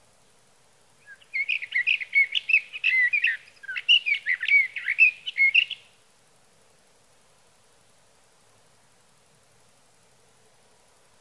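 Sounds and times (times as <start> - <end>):
sage thrasher warbling song: 1.1 - 5.8.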